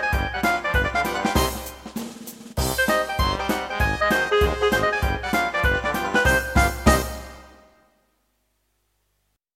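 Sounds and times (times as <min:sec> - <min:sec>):
dixieland jazz: 0:00.0 - 0:07.6.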